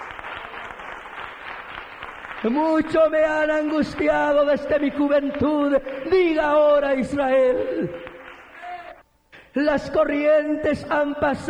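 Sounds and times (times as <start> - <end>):
church congregation applauding during an evening service: 0.0 - 9.0
speech: 2.4 - 8.1, 9.6 - 11.4.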